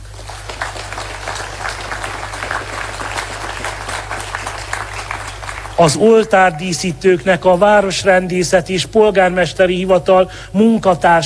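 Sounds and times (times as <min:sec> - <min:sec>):
audience applause: 0:00.0 - 0:06.6
speech: 0:05.8 - 0:11.2.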